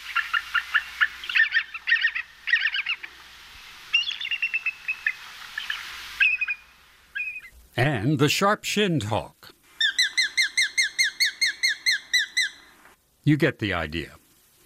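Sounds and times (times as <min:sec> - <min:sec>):
bald eagle call: 0:00.0 - 0:03.2, 0:03.9 - 0:07.6, 0:09.8 - 0:12.8
speech: 0:07.8 - 0:09.4, 0:13.3 - 0:14.2.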